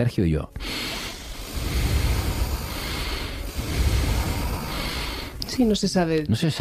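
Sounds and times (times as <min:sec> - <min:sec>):
speech: 0:00.0 - 0:00.7, 0:05.6 - 0:06.5
three people breathing together: 0:00.6 - 0:05.8.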